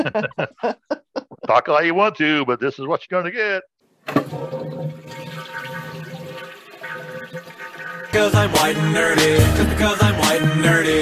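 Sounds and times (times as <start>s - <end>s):
laughter: 0.0s - 1.7s
speech: 0.0s - 5.2s, 8.1s - 11.0s
toilet flushing: 4.0s - 10.0s.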